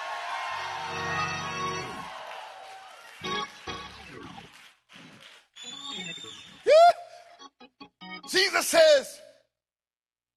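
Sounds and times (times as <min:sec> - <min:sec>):
audience screaming and cheering: 0:00.0 - 0:07.2
speech: 0:08.4 - 0:09.2.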